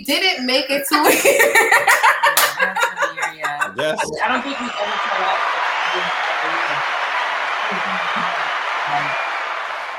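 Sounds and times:
speech: 0:00.0 - 0:02.8, 0:07.7 - 0:09.2
laughter: 0:00.9 - 0:09.7
audience clapping: 0:02.4 - 0:02.7, 0:04.6 - 0:09.9
low voices murmuring: 0:02.5 - 0:09.4.

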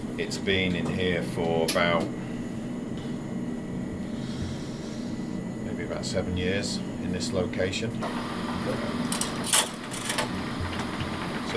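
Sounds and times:
low motor hum of film processing machine: 0:00.0 - 0:11.5
speech: 0:00.2 - 0:02.2, 0:05.9 - 0:09.1
film processing machine shuffling film along, clacking and rattling: 0:08.4 - 0:11.5.

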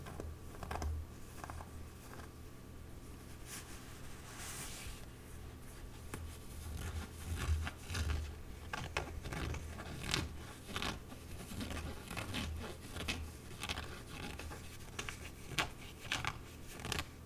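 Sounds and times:
glove scratching and rubbing: 0:00.0 - 0:02.4, 0:03.0 - 0:17.2.

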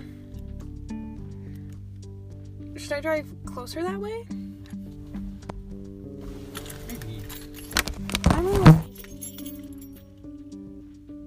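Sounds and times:
speech: 0:02.8 - 0:04.4
keys jangling: 0:06.5 - 0:10.2.

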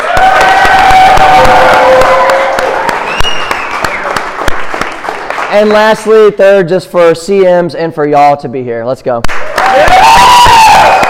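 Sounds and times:
audience applause: 0:00.0 - 0:06.1, 0:09.3 - 0:11.0
speech: 0:05.6 - 0:09.8.

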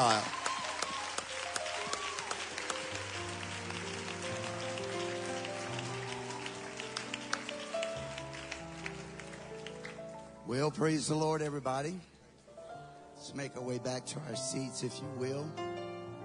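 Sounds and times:
speech: 0:00.0 - 0:00.4, 0:10.5 - 0:12.1, 0:13.3 - 0:15.7
church congregation applauding the pastor of a Pentecostal church: 0:00.0 - 0:10.4.

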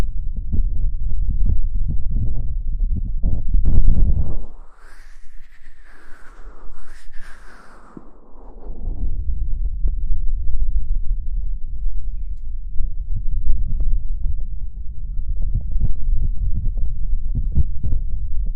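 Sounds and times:
muffled ear-covered low rumbling: 0:00.0 - 0:18.5
breathy whoosh: 0:04.2 - 0:09.1.

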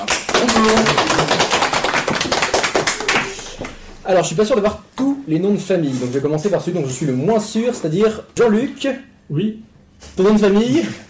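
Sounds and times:
speech: 0:00.0 - 0:01.0, 0:04.1 - 0:11.0
audience applause: 0:00.0 - 0:03.8.

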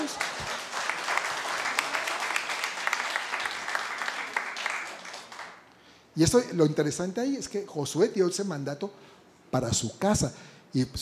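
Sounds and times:
audience applause: 0:00.0 - 0:05.6
speech: 0:06.2 - 0:11.0.

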